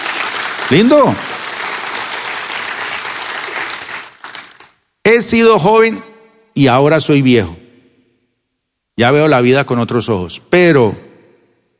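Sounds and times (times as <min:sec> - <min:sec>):
audience applause: 0:00.0 - 0:04.8
speech: 0:00.7 - 0:01.3, 0:05.0 - 0:07.6, 0:09.0 - 0:11.0.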